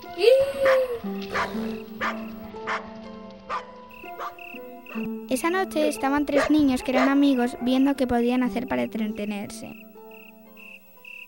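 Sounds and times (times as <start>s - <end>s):
dog barking: 0.6s - 2.9s, 3.5s - 5.1s, 6.3s - 7.2s
speech: 5.4s - 9.9s.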